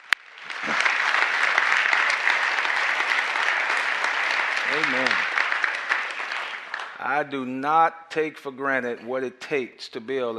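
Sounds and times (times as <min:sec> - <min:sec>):
audience applause: 0:00.0 - 0:07.4
speech: 0:04.7 - 0:05.3, 0:07.0 - 0:10.3.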